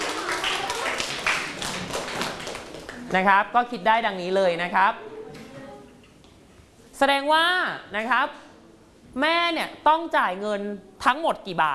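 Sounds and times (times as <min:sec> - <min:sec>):
students clapping for themselves: 0:00.0 - 0:03.1
speech: 0:03.1 - 0:05.1, 0:07.0 - 0:08.4, 0:09.2 - 0:11.7.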